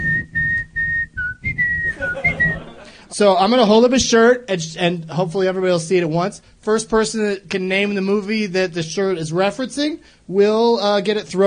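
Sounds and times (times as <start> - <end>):
person whistling a tune: 0.0 - 2.7
laughter: 1.8 - 3.1
speech: 3.1 - 11.4.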